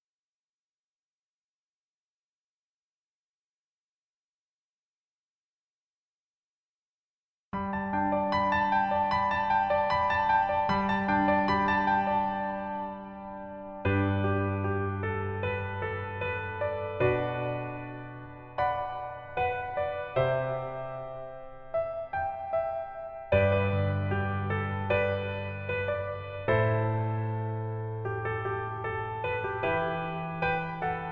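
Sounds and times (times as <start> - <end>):
piano melody instrumental in female key: 7.6 - 31.1.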